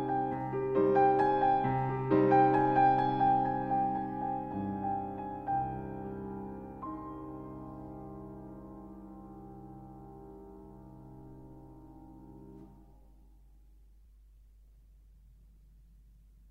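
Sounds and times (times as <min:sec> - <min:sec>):
melancholic piano waltz: 0:00.0 - 0:12.9.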